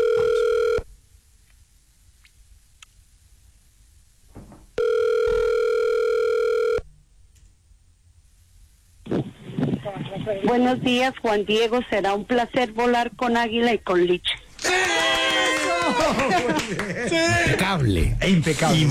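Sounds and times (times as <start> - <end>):
telephone line tone of a transferred call: 0.0 - 0.8, 4.8 - 6.8
speech: 10.4 - 14.9, 16.0 - 18.8
laughter: 14.6 - 17.8.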